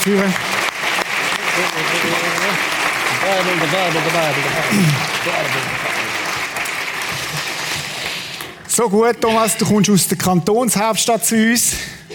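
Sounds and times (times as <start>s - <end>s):
speech: 0.0s - 0.5s, 1.6s - 6.0s, 8.8s - 12.1s
audience applause welcoming a guest: 0.0s - 8.7s.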